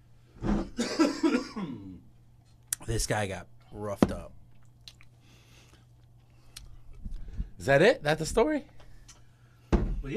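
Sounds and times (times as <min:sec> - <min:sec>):
person coughing: 0:00.7 - 0:02.0
speech: 0:02.9 - 0:04.4, 0:07.6 - 0:08.8.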